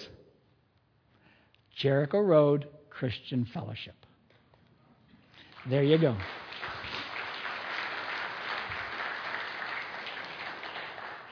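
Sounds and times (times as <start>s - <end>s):
speech: 1.8s - 4.1s, 5.6s - 6.4s
audience applause: 5.5s - 11.2s.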